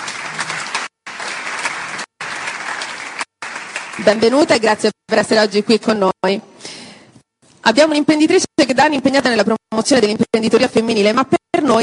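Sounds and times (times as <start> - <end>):
audience applause welcoming a guest: 0.0 - 4.4
speech: 4.0 - 6.5, 7.7 - 11.8.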